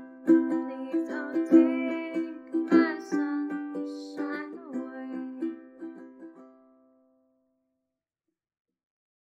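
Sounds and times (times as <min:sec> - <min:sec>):
person singing: 0:00.0 - 0:06.3
ukulele playing: 0:00.0 - 0:07.1.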